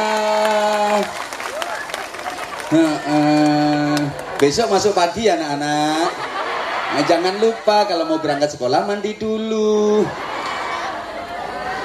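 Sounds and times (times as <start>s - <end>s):
children clapping their hands: 0.0s - 4.8s
laughter: 2.2s - 8.5s, 9.7s - 11.8s
speech: 2.7s - 3.5s, 4.4s - 6.2s, 6.9s - 10.3s.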